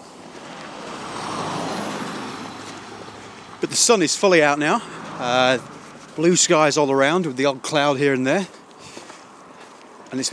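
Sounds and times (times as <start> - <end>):
cars zooming past on a road: 0.0 - 10.3
speech: 3.6 - 8.6, 10.1 - 10.3.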